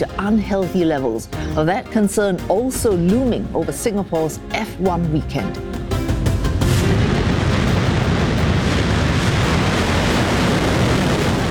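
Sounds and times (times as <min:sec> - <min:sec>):
speech: 0:00.0 - 0:05.7
South Korea's Nuri rocket lifting off: 0:06.4 - 0:11.5.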